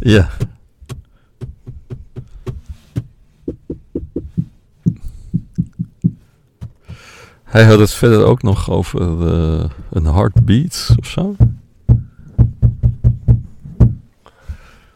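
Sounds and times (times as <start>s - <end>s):
speech: 0.0s - 0.4s, 7.5s - 11.5s
hands drumming on a car dashboard: 0.0s - 7.2s, 9.8s - 14.1s.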